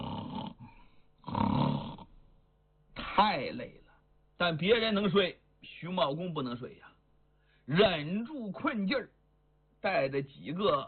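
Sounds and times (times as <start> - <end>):
storyteller imitating snoring: 0.0 - 2.1
speech: 3.2 - 3.8, 4.4 - 6.9, 7.7 - 9.2, 9.8 - 10.8.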